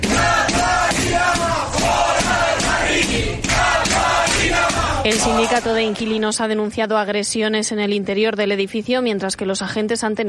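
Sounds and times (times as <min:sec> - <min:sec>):
crowd of activists chanting slogans: 0:00.0 - 0:06.2
speech: 0:05.2 - 0:10.2.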